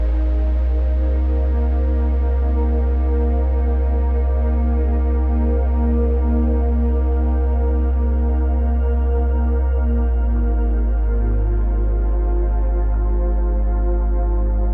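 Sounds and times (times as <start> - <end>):
ambient soundscape: 0.0 - 14.7.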